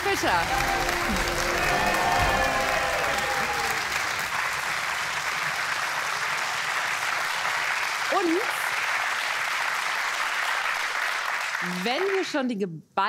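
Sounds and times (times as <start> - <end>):
studio audience cheering: 0.0 - 6.6
studio audience applause: 0.0 - 12.4
speech: 0.2 - 1.4, 11.6 - 13.0.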